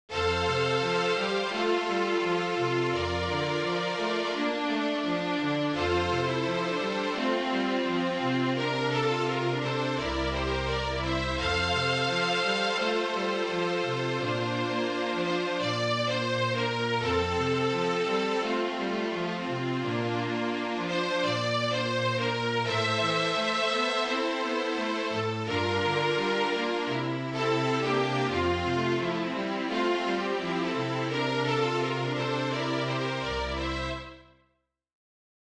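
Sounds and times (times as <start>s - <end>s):
MIDI quartet music: 0.1s - 34.3s.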